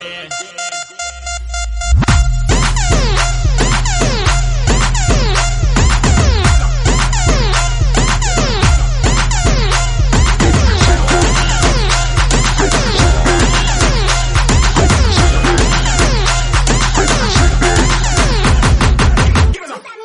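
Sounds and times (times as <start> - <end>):
hip-hop tone: 0.0 - 19.6.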